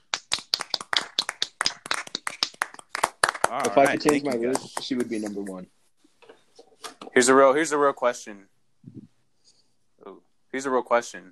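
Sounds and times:
round of applause: 0:00.0 - 0:05.6
speech: 0:03.5 - 0:05.8, 0:07.2 - 0:09.0, 0:10.0 - 0:11.2.

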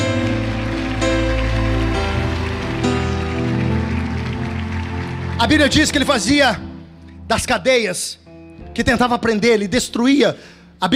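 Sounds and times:
audience applause: 0:00.0 - 0:06.7
speech: 0:05.4 - 0:06.7, 0:07.3 - 0:08.2, 0:08.8 - 0:10.9.

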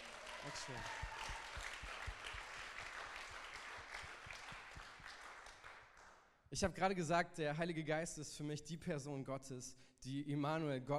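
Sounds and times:
audience applause: 0:00.0 - 0:06.1
speech: 0:00.4 - 0:01.1, 0:06.5 - 0:10.9.

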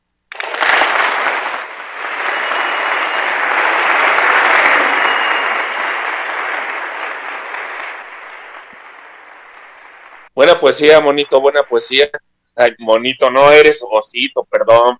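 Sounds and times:
crowd applauding: 0:00.3 - 0:10.3
speech: 0:10.4 - 0:14.9.

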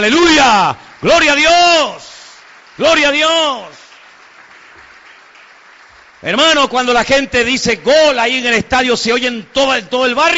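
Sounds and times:
speech: 0:00.0 - 0:02.1, 0:02.8 - 0:03.8, 0:06.2 - 0:10.3
audience applause: 0:00.0 - 0:07.6.

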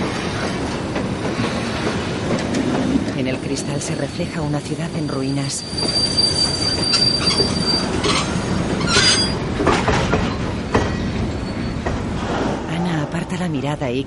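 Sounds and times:
train crossing a bridge at night rumbling on rails: 0:00.0 - 0:14.0
speech: 0:03.5 - 0:08.3, 0:13.3 - 0:14.0
high-pitched train wheel squeals: 0:05.1 - 0:09.4, 0:10.3 - 0:12.1.

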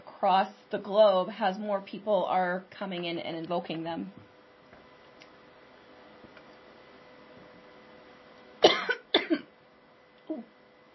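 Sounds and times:
speech: 0:00.2 - 0:04.3
person coughing after swallowing water wrong: 0:08.6 - 0:09.5.

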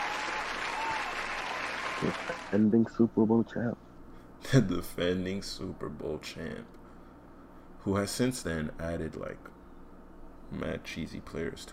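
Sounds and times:
applause: 0:00.0 - 0:02.6
speech: 0:02.0 - 0:06.8, 0:07.8 - 0:09.6, 0:10.5 - 0:11.7.

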